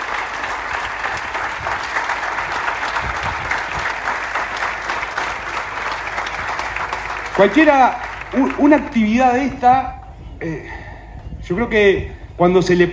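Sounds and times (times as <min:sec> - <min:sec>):
sustained applause from a sizable audience: 0:00.0 - 0:09.0
speech: 0:07.4 - 0:10.8, 0:11.5 - 0:12.9.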